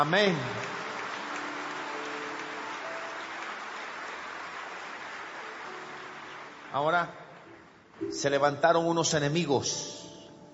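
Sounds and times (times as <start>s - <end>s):
speech: 0.0s - 0.7s, 6.7s - 7.2s, 8.0s - 10.0s
audience applause: 0.0s - 8.0s.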